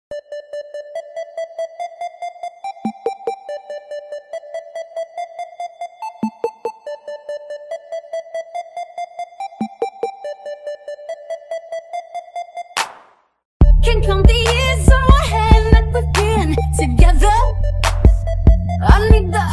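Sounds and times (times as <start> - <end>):
bass: 13.6 - 19.5.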